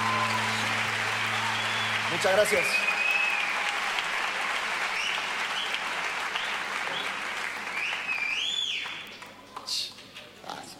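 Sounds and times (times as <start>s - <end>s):
audience applause: 0.0s - 9.2s
audience whistling: 1.3s - 3.6s, 5.0s - 5.8s, 7.7s - 9.2s
speech: 2.1s - 3.0s.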